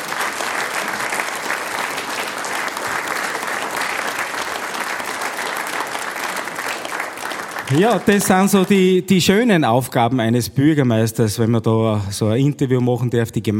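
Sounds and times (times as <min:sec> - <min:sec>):
audience applause: 0:00.0 - 0:09.2
speech: 0:07.7 - 0:13.5.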